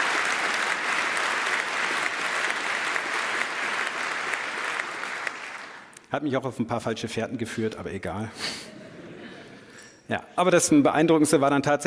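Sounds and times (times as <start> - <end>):
applause: 0.0 - 6.0
speech: 6.1 - 8.8, 10.1 - 11.8.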